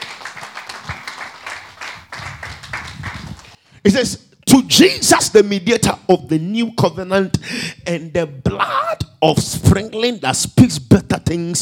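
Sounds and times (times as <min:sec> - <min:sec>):
crowd clapping: 0:00.0 - 0:03.6
speech: 0:03.8 - 0:11.6.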